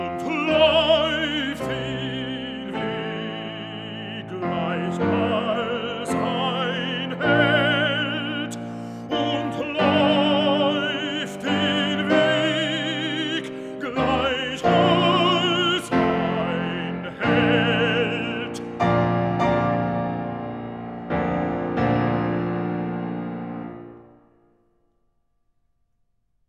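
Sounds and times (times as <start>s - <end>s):
person singing: 0.0s - 19.1s
piano: 0.0s - 24.9s.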